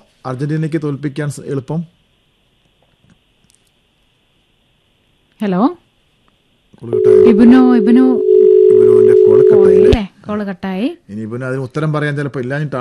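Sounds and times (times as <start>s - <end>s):
speech: 0.2s - 2.0s, 5.4s - 5.8s, 6.8s - 8.4s, 9.2s - 12.7s
telephone tone after a dropped phone call: 6.9s - 10.0s.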